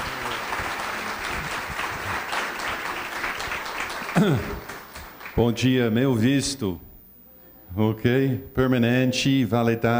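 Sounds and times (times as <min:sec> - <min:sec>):
applause: 0:00.0 - 0:05.4
speech: 0:04.2 - 0:04.6, 0:05.4 - 0:06.9, 0:07.7 - 0:09.9.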